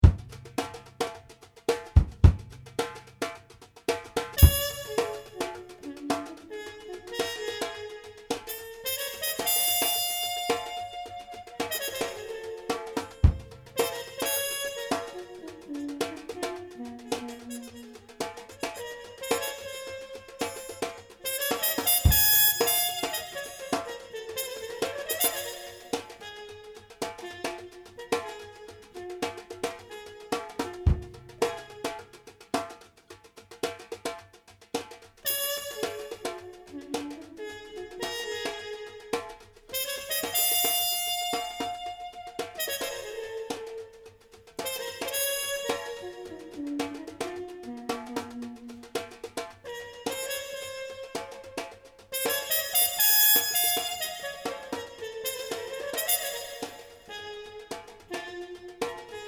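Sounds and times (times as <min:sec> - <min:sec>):
trumpet: 0:00.0 - 0:32.9, 0:35.1 - 0:59.2.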